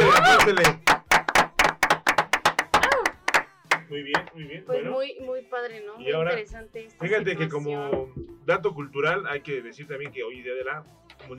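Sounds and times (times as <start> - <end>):
audience clapping: 0.0 - 4.3
speech: 0.4 - 0.8, 3.9 - 11.3.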